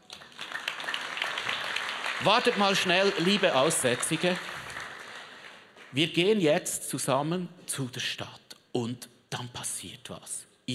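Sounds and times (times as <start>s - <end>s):
small group applauding: 0.0s - 6.1s
speech: 2.2s - 4.5s, 5.9s - 10.7s.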